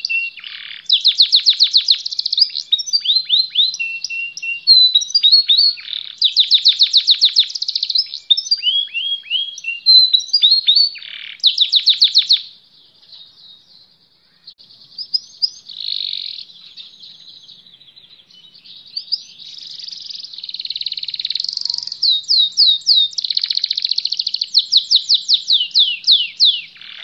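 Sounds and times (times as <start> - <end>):
canary singing: 0.0 - 27.0.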